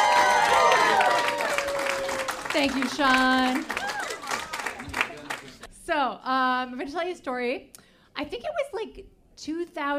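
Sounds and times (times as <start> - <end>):
audience clapping and cheering: 0.0 - 5.7
speech: 2.6 - 3.8, 5.9 - 9.9.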